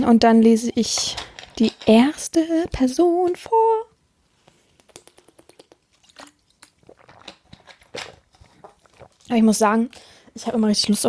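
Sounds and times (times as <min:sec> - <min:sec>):
speech: 0:00.0 - 0:03.8, 0:09.3 - 0:11.0
sip of a drink with wet mouth and swallowing sounds: 0:04.8 - 0:10.4.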